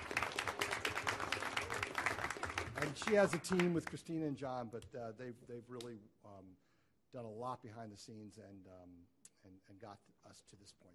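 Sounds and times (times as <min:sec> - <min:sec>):
round of applause at a gathering for a staff member: 0:00.0 - 0:04.0
speech: 0:02.8 - 0:10.9.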